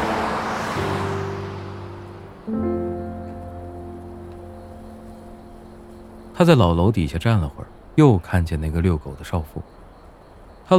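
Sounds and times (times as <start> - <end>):
car passing in evening rush-hour road traffic: 0.0 - 6.7
speech: 6.4 - 9.8.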